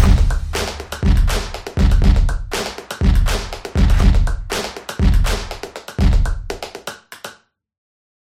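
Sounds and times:
intro stomp: 0.1 - 6.4.

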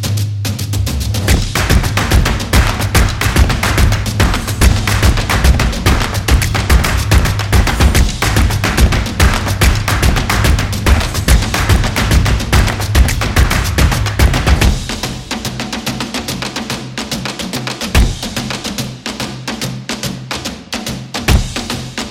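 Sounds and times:
energetic drums: 0.0 - 22.1.

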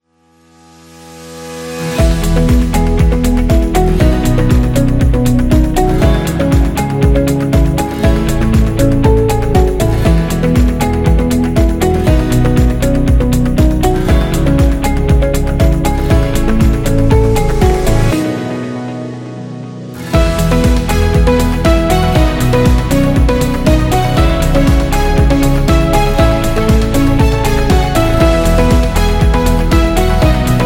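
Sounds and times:
corporate beat: 2.0 - 18.2, 20.1 - 30.6.

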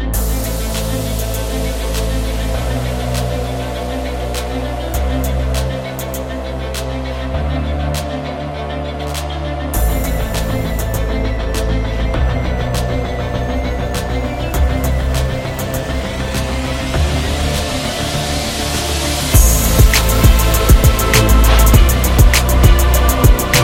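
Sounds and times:
epic trap beat: 0.1 - 23.6.

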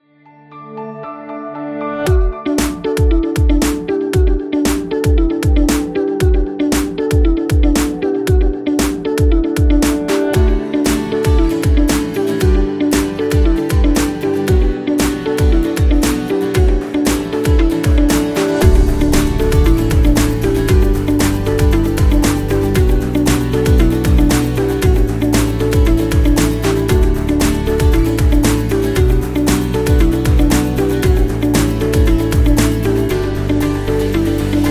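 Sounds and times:
business background music: 0.2 - 34.7.

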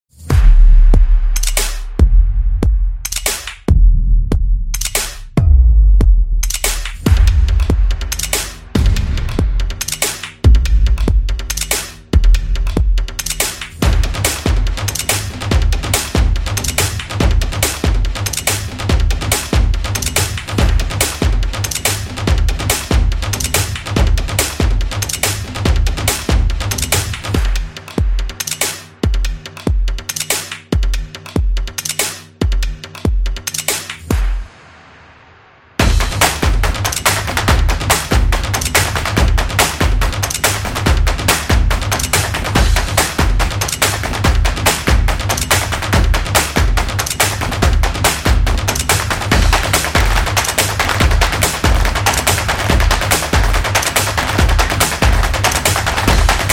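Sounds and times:
rhythmic beat: 0.2 - 35.2, 35.8 - 56.5.

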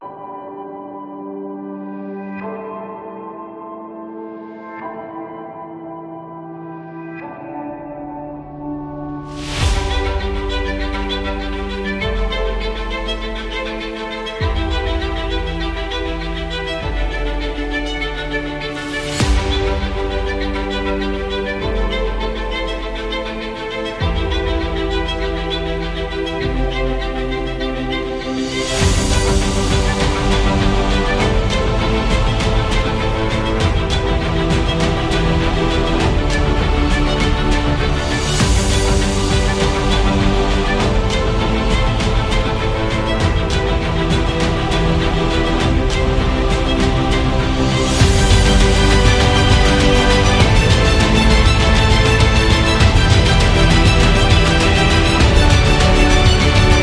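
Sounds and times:
epic corporate music: 6.6 - 56.8.

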